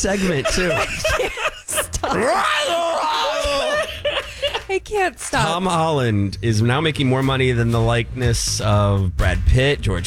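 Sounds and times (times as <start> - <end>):
speech: 0.0 - 1.1, 2.1 - 2.8, 4.8 - 10.0
laughter: 0.0 - 4.8
woman screaming into the microphone: 2.0 - 4.2.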